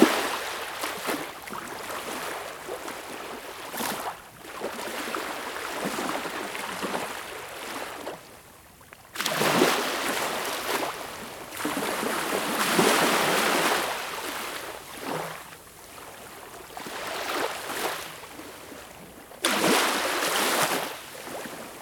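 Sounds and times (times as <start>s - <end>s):
waves at Baltic Sea shore: 0.0s - 8.3s, 9.2s - 21.7s.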